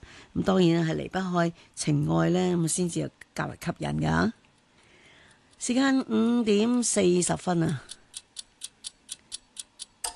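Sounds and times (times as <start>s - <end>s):
speech: 0.4s - 4.4s, 5.6s - 8.0s
clock ticking: 5.4s - 10.1s.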